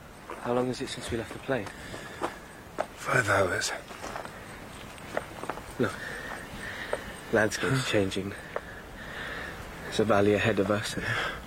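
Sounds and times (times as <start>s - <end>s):
footsteps scraping rough ground while walking: 0.2s - 8.8s
speech: 0.4s - 2.2s, 3.0s - 4.0s, 5.8s - 6.0s, 7.3s - 8.4s, 10.0s - 11.4s.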